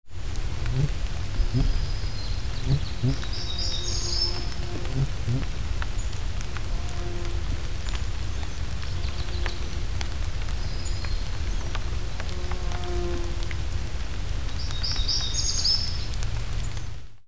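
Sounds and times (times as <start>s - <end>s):
rain: 0.0s - 17.2s.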